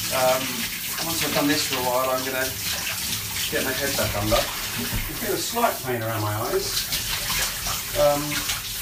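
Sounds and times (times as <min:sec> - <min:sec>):
speech: 0:00.1 - 0:02.8, 0:03.5 - 0:07.0, 0:07.9 - 0:08.6
shower head spraying water over legs: 0:01.1 - 0:08.7.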